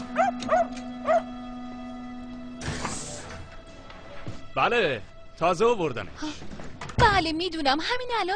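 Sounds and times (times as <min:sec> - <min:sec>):
dog barking and yipping: 0:00.2 - 0:01.3
speech: 0:04.7 - 0:08.3.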